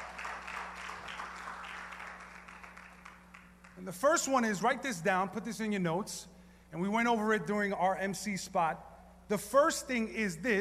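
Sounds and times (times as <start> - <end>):
crowd applause: 0.0 - 3.8
faint low electrical hum: 0.0 - 10.6
speech: 3.8 - 10.6.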